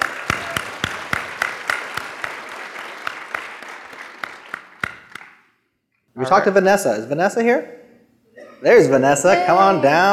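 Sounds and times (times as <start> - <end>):
audience clapping for a speaker at a JavaScript lightning-talk event: 0.0 - 5.5
speech: 6.2 - 7.8, 8.6 - 10.1.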